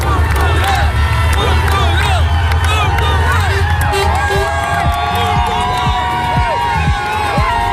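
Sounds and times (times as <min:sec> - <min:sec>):
large crowd cheering arrival of team bus: 0:00.0 - 0:07.7
whistles: 0:01.8 - 0:03.0.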